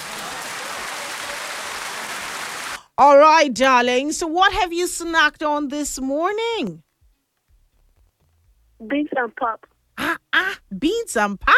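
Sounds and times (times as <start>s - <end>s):
round of applause: 0.0s - 2.8s
speech: 3.0s - 6.8s, 8.8s - 11.5s.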